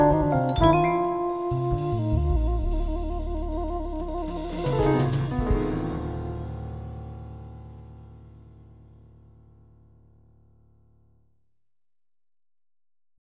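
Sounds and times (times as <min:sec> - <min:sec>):
synthesizer jazz: 0:00.0 - 0:07.7.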